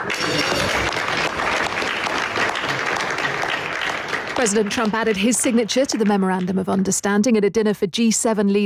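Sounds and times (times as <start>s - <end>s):
applause at a G7 leaders' dinner at the Palace of Versailles: 0.0s - 6.9s
speech: 4.4s - 8.6s.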